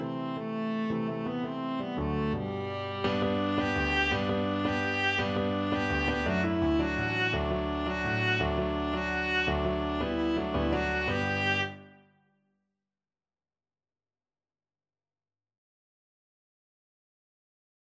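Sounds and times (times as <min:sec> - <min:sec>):
viola: 0:00.0 - 0:12.0.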